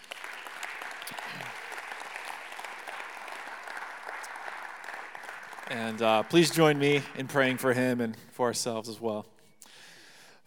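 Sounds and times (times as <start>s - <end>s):
audience applause welcoming a pastor at a Northwestern gathering: 0.0s - 8.0s
speech: 5.7s - 9.3s.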